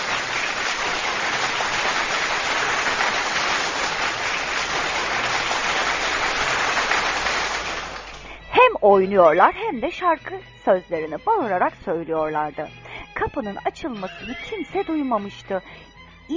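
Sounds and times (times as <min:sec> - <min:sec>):
crowd applause: 0:00.0 - 0:08.5
speech: 0:08.8 - 0:16.3.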